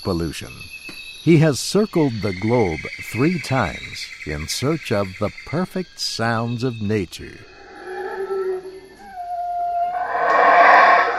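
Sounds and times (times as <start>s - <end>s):
speech: 0.0s - 7.5s
howler monkeys calling in a tropical rainforest: 7.4s - 11.1s.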